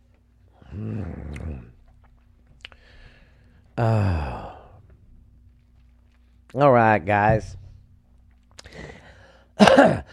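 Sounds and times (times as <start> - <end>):
speech: 0.7 - 1.8, 3.8 - 4.3, 6.5 - 7.6, 9.8 - 10.1
person coughing: 9.6 - 10.1.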